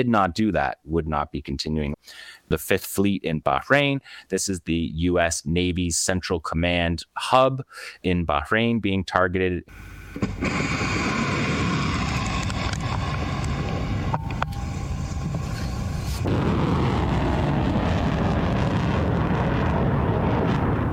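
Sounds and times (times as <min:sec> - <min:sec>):
speech: 0:00.0 - 0:11.1
Khyber Shekan Fatah 110 and Fatah 313 solid-fuel missiles launching: 0:10.2 - 0:20.9.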